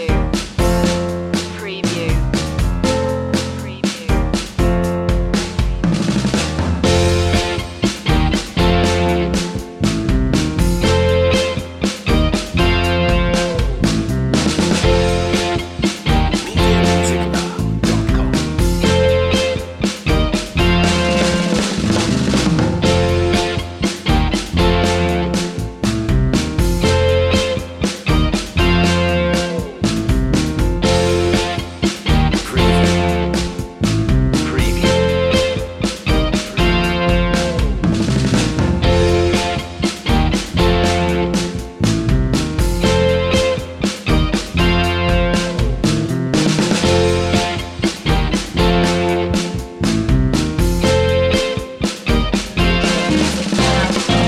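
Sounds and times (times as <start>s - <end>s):
Motown-style sparkling underscore music without synth: 0.2s - 1.6s, 2.2s - 54.2s.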